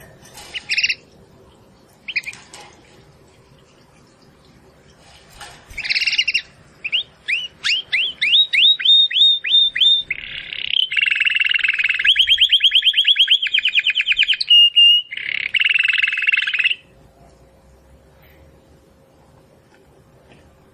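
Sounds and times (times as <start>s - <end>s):
domestic canary singing: 0.5s - 1.1s, 5.7s - 16.9s.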